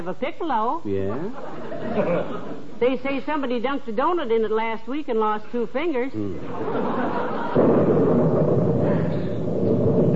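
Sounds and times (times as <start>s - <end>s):
speech: 0.0s - 9.3s
laughter: 1.0s - 2.8s, 6.4s - 7.8s
thunder clap: 6.6s - 10.1s.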